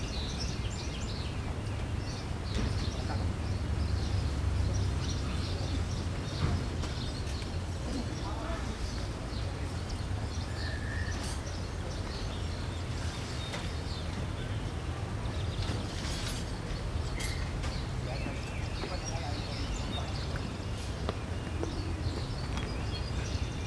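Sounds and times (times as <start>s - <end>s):
late city ambience bed: 0.0s - 23.6s.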